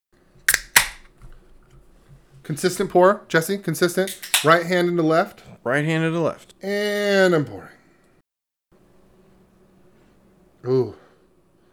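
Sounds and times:
beer can cracked open: 0:00.5 - 0:01.2, 0:04.1 - 0:04.5
speech: 0:02.4 - 0:07.8, 0:10.6 - 0:11.0.

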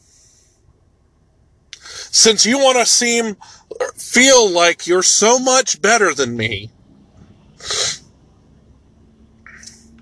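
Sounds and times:
speech: 0:02.1 - 0:06.8, 0:07.6 - 0:07.8
person sneezing from allergies: 0:07.6 - 0:08.0.

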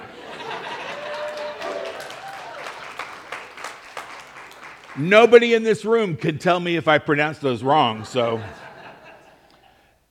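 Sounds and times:
laughter: 0:00.0 - 0:03.3, 0:07.6 - 0:09.9
audience applause: 0:00.0 - 0:05.6
speech: 0:05.0 - 0:08.6.

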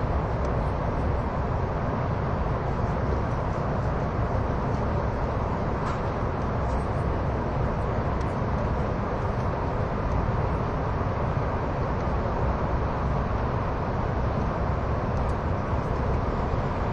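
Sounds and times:
SBB ETR610 Eurocity tilting train running on the Gotthard route: 0:00.0 - 0:16.9.

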